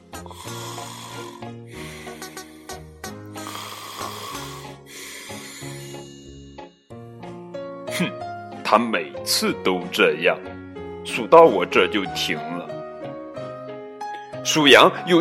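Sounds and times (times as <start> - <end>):
loud raspy snoring: 0.0 - 2.6, 3.4 - 6.0
speech: 0.2 - 1.7, 8.0 - 12.7, 14.5 - 15.1.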